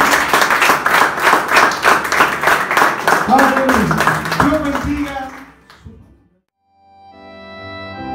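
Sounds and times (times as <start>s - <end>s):
rhythmic applause: 0.0s - 6.0s
speech: 4.8s - 5.4s.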